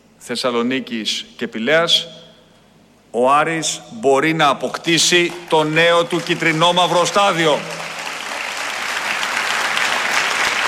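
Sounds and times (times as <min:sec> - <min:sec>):
speech: 0:00.2 - 0:02.2, 0:03.1 - 0:07.8
audience applauding: 0:05.1 - 0:10.6.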